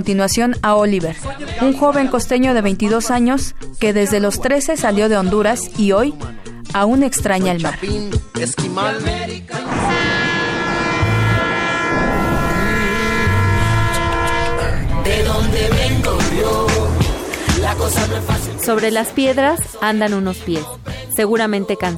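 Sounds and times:
speech: 0.0s - 10.1s, 17.9s - 21.9s
freight train rumbling on tracks: 0.2s - 8.2s, 9.8s - 20.6s
freight train horn blast: 9.7s - 16.1s.

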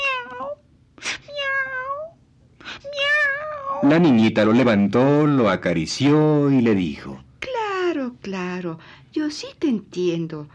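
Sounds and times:
kitten meowing plaintively: 0.0s - 0.6s, 1.3s - 2.1s, 2.8s - 3.9s
speech: 3.8s - 7.3s, 8.2s - 10.5s.

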